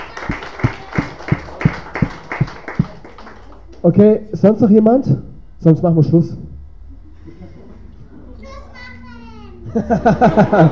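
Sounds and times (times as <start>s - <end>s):
audience applause: 0.0s - 3.8s
speech: 3.9s - 6.5s, 9.8s - 10.7s
laughter: 6.9s - 8.4s, 9.6s - 10.7s.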